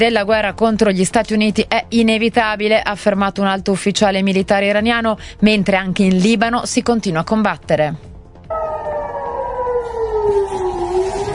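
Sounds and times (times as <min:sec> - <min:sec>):
speech: 0:00.0 - 0:08.8
air raid sirens wailing: 0:08.5 - 0:11.3.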